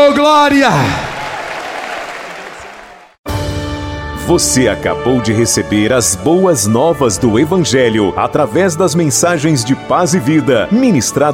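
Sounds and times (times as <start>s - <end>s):
speech: 0.0s - 1.1s, 4.3s - 11.3s
audience applause: 0.4s - 3.2s.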